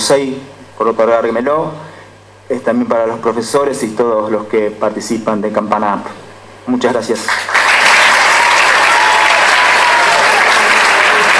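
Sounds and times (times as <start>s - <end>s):
speech: 0.1s - 1.9s, 2.5s - 7.6s
audience applause: 7.3s - 11.3s.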